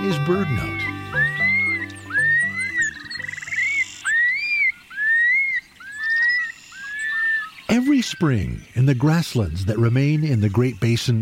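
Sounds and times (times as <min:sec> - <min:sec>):
speech: 0:00.0 - 0:01.2, 0:07.7 - 0:11.1
long-billed curlew bubbling song: 0:00.0 - 0:11.1.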